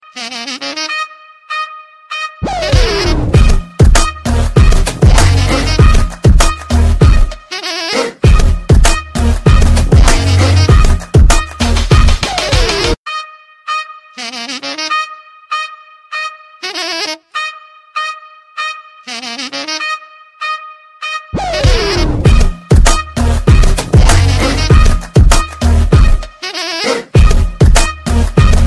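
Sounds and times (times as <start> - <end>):
music beat: 2.2 - 13.4, 21.0 - 28.6.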